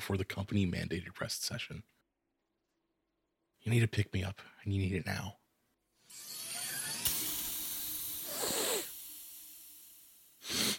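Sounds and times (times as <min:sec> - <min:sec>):
speech: 0:00.1 - 0:02.0, 0:03.6 - 0:05.4
pressurized spray bottle spraying: 0:07.2 - 0:10.7.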